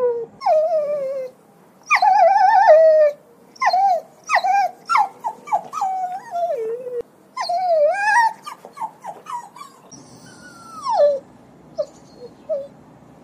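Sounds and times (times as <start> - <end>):
dog whining and yelping: 0.0 - 13.2.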